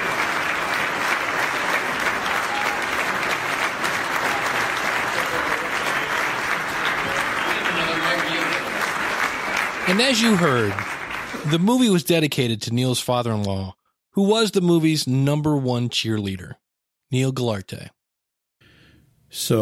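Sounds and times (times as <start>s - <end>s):
audience standing ovation applause: 0.0s - 12.0s
speech: 9.9s - 18.0s, 19.3s - 19.5s.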